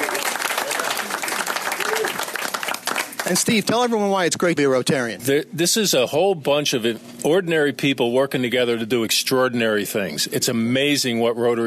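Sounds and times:
audience applause: 0.0 - 3.6
speech: 3.3 - 11.6.

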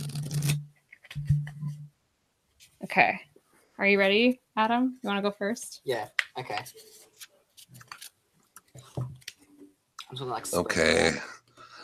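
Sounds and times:
shuffling a deck of cards: 0.0 - 1.5, 6.5 - 9.4
speech: 2.9 - 7.1, 10.1 - 11.4.

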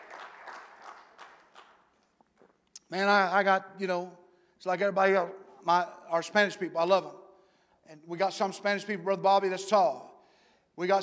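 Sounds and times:
audience clapping: 0.0 - 2.2
speech: 2.9 - 7.2, 7.9 - 10.1, 10.8 - 11.0.

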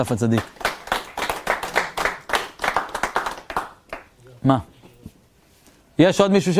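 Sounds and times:
speech: 0.0 - 0.6, 4.4 - 4.7, 6.0 - 6.5
audience clapping: 0.0 - 4.2.

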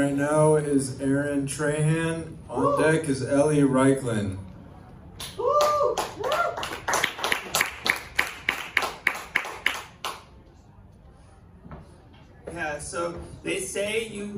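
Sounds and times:
speech: 0.0 - 4.4, 12.8 - 14.3
stand-up comedy audience applause as the next comedian takes the stage: 5.2 - 10.2.

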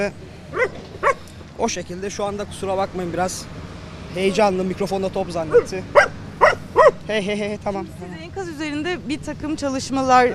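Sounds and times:
speech: 0.0 - 0.8, 1.6 - 6.1, 6.8 - 10.3
search and rescue dog barking: 0.5 - 1.2, 5.5 - 7.0.

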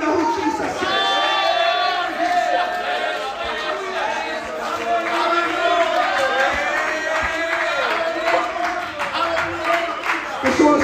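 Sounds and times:
audience shouting: 0.0 - 10.7.

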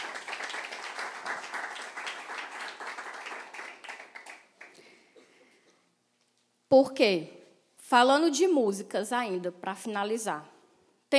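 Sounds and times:
applause: 0.0 - 5.1
speech: 6.7 - 10.5.

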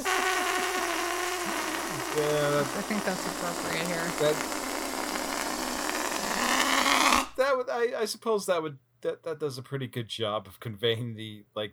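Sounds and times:
balloon slowly letting out its air with hiss and squeal: 0.0 - 7.4
speech: 2.2 - 4.6, 7.4 - 11.7.

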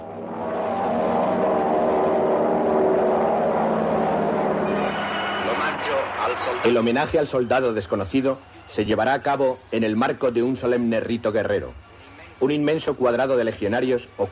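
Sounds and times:
biplane fighters flying in formation: 0.0 - 6.8
speech: 6.4 - 11.8, 12.4 - 14.3.

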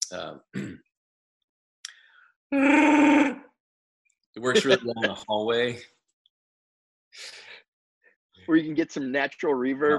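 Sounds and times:
speech: 0.1 - 0.9, 2.5 - 3.4, 4.4 - 6.0, 8.5 - 9.9
person imitating a Wookiee growl: 2.6 - 3.4
laughter: 4.4 - 5.8.

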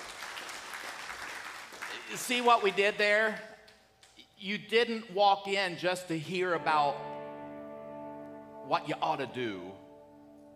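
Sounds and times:
audience applause: 0.0 - 3.0
speech: 2.1 - 3.5, 4.4 - 7.1, 8.7 - 9.8.

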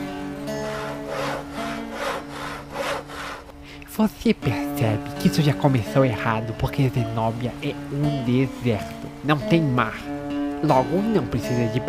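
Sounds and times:
saw cutting wood: 0.0 - 3.6
speech: 4.0 - 11.8.

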